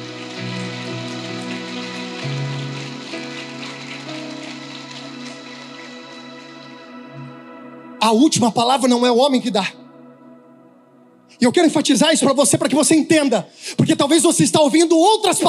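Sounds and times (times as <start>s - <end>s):
audience applause: 0.0s - 7.0s
sustained keyboard chords: 0.0s - 13.1s
speech: 8.0s - 9.8s, 11.4s - 15.4s.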